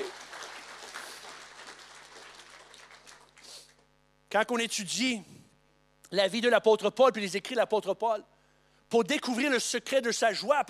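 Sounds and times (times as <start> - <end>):
crowd applause: 0.0 - 3.7
speech: 4.3 - 5.4, 6.1 - 8.3, 8.9 - 10.6.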